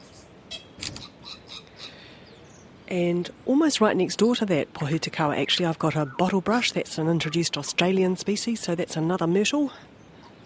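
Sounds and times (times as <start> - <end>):
faint hiss: 0.0 - 10.4
camera shutter clicks: 0.8 - 1.1
speech: 2.9 - 10.0.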